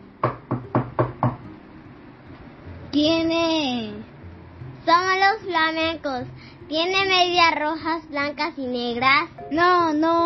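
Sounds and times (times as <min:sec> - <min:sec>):
firm knocking on a wooden shop door: 0:00.2 - 0:01.5
speech: 0:03.0 - 0:04.1, 0:04.8 - 0:10.2.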